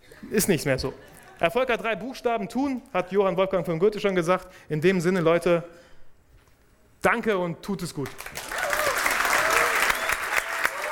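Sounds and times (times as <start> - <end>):
speech: 0.3 - 5.9, 7.0 - 8.4
applause: 8.0 - 10.8.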